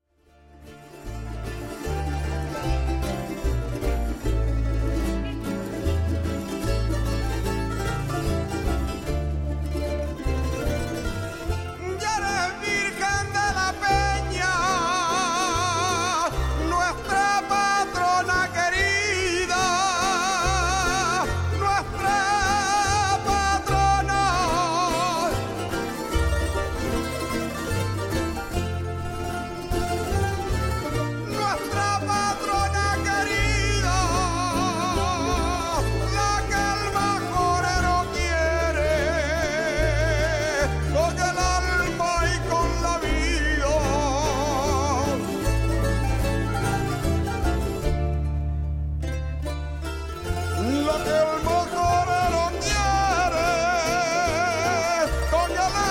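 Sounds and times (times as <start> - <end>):
folk music: 0.0 - 55.9.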